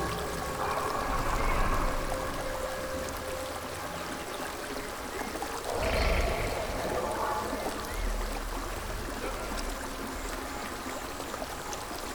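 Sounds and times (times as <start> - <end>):
ambience: 0.0 - 11.2.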